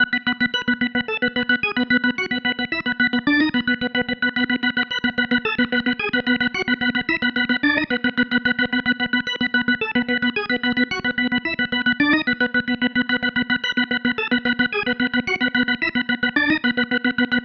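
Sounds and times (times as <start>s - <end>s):
psychedelic organ loop: 0.0s - 17.4s.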